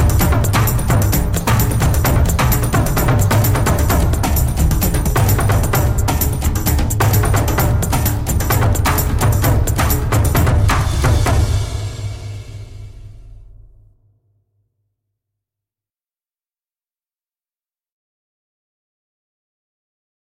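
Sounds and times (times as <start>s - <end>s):
instrumental music: 0.0s - 13.3s.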